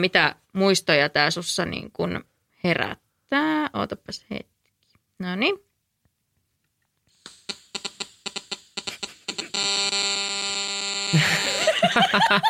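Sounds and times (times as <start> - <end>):
speech: 0.0 - 4.5, 5.2 - 5.7, 11.1 - 12.4
mobile phone interference buzz in radio speakers: 7.1 - 12.1
laughter: 11.1 - 12.4.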